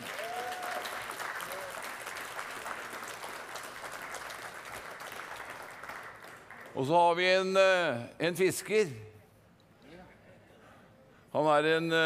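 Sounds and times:
audience applause: 0.0s - 6.8s
speech: 6.8s - 9.1s, 11.4s - 12.0s.

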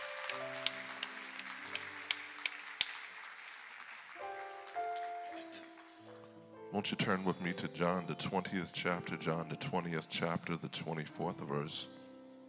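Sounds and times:
audience applause: 0.0s - 5.9s
speech: 6.7s - 12.0s.

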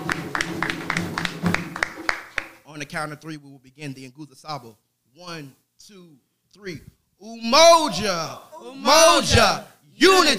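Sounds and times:
rhythmic hand clapping: 0.0s - 2.7s
speech: 2.8s - 10.3s.

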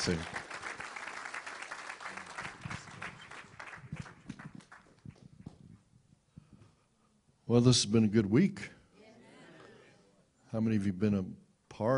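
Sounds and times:
speech: 0.0s - 0.4s, 7.5s - 8.8s, 10.5s - 11.9s
audience applause welcoming a pastor: 0.0s - 5.0s.

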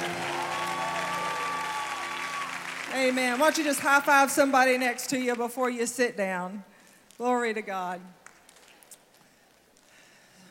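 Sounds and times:
audience clapping: 0.0s - 5.5s, 8.2s - 10.0s
speech: 2.9s - 8.2s.

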